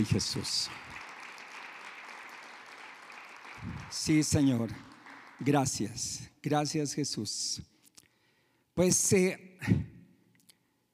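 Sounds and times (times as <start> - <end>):
speech: 0.0 - 0.9, 3.6 - 7.7, 8.8 - 9.9
audience applause ovation: 0.0 - 5.8.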